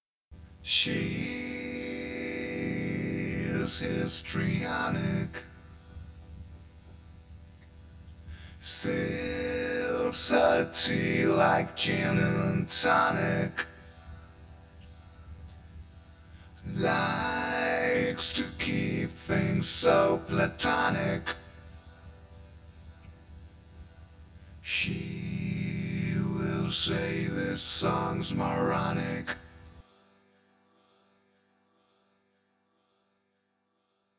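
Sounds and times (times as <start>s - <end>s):
histrionic vocals: 0.6s - 5.9s, 8.3s - 15.2s, 16.2s - 23.0s, 24.6s - 29.9s.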